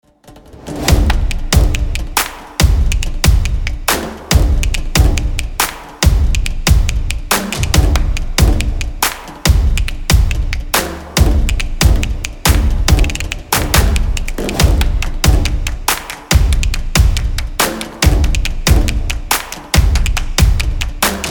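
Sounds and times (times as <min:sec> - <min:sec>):
energetic stomping beat: 0:00.6 - 0:21.2.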